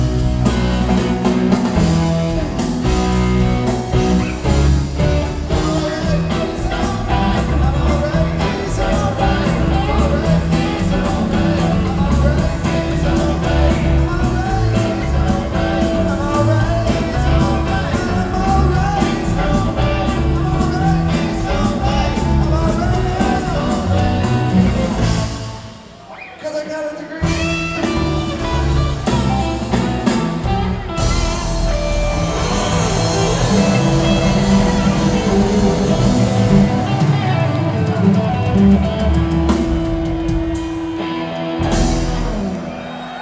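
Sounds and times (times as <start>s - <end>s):
blues music: 0.0s - 43.2s.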